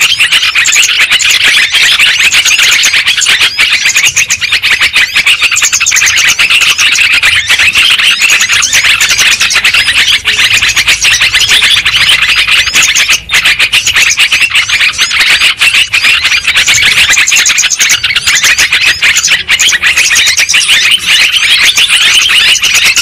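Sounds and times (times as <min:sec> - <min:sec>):
lovebird flock chirping: 0:00.0 - 0:23.0.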